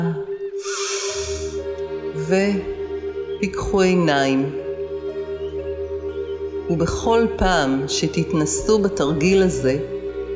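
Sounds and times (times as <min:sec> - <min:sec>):
sustained droning soft music: 0:00.0 - 0:10.3
deep breath drawn in during a guided relaxation exercise: 0:00.6 - 0:01.6
speech: 0:02.3 - 0:02.8, 0:03.4 - 0:04.6, 0:06.7 - 0:09.9.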